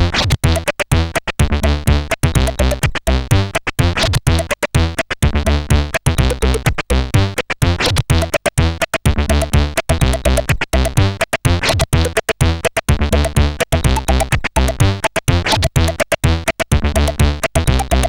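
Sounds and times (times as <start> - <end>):
beatboxing: 0.2 - 18.0.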